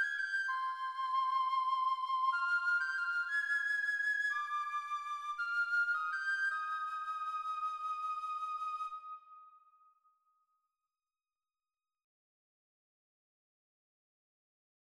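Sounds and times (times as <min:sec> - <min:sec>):
piccolo: 0:00.0 - 0:09.7.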